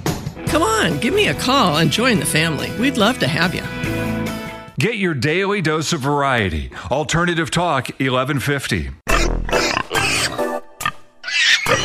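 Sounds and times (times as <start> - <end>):
speech: 0.6 - 4.1, 4.8 - 9.0
pigs squealing and grunting: 9.1 - 11.8.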